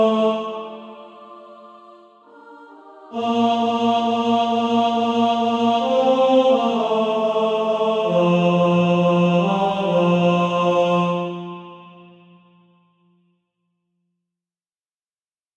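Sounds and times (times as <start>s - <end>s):
tenor practice music: 0.0s - 12.3s.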